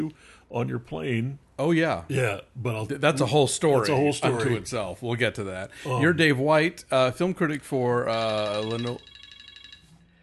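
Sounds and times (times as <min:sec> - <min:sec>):
speech: 0:00.0 - 0:09.1
faint electronic mobile phone ringtone trill: 0:08.1 - 0:10.2.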